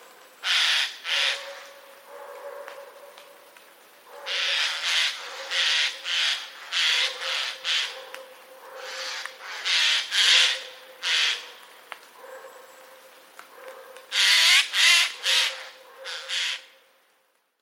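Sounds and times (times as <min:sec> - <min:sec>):
jays screaming alarm calls in a forest: 0:00.4 - 0:01.4, 0:04.3 - 0:08.0, 0:08.8 - 0:11.4, 0:14.1 - 0:16.7.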